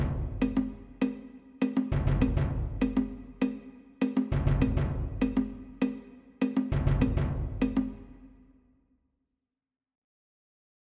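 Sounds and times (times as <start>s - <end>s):
percussion: 0.0s - 8.6s.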